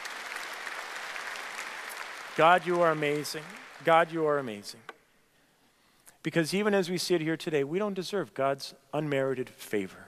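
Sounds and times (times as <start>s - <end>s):
audience applause: 0.0s - 4.5s
speech: 2.4s - 4.9s, 6.2s - 10.0s.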